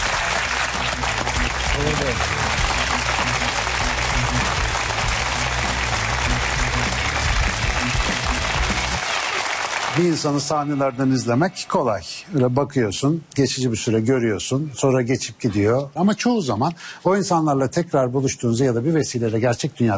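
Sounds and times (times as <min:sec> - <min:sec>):
audience applause: 0:00.0 - 0:11.3
speech: 0:10.0 - 0:19.9.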